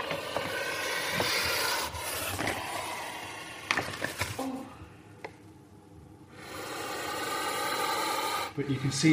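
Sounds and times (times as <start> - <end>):
puff adder puffing: 0.0 - 3.7, 6.3 - 9.1.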